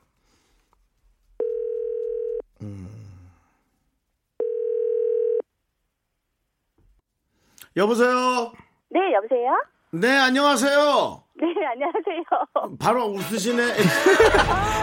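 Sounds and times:
telephone dial tone: 0:01.4 - 0:02.4, 0:04.4 - 0:05.4
speech: 0:07.8 - 0:14.8
laughter: 0:13.6 - 0:14.8.

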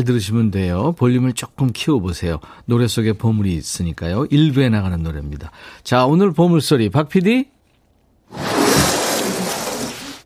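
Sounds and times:
speech: 0:00.0 - 0:07.6, 0:08.3 - 0:08.9
curtain being pulled open forcefully: 0:08.3 - 0:10.2.

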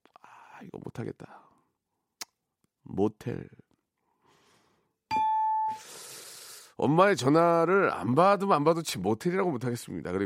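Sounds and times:
speech: 0:00.6 - 0:01.5, 0:02.9 - 0:03.6, 0:06.8 - 0:10.2
ding-dong-dang correct answer chime: 0:05.1 - 0:05.8.

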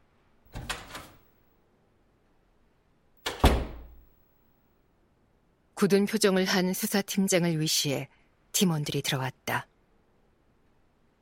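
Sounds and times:
meeting room door opening: 0:00.5 - 0:01.2, 0:03.2 - 0:04.0
speech: 0:05.8 - 0:09.7.

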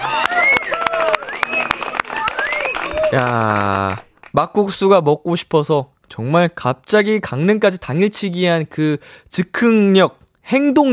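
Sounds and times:
applause and cheering: 0:00.0 - 0:04.4
speech: 0:03.1 - 0:10.9.

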